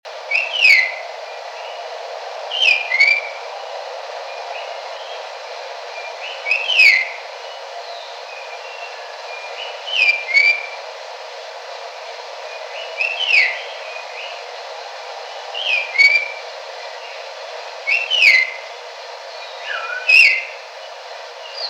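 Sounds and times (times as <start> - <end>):
red-tailed palm thrush singing in Kinshasa at night: 0.1 - 10.9, 12.1 - 21.6.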